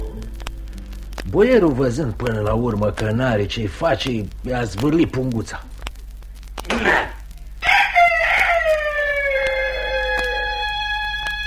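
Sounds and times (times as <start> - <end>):
speech: 1.2 - 5.7
rooster crowing: 7.6 - 11.4.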